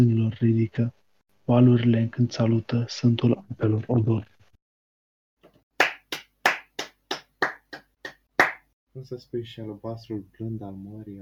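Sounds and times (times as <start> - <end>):
speech: 0.0 - 4.3, 9.0 - 11.2
hands clapping after poem recitation: 5.8 - 8.7.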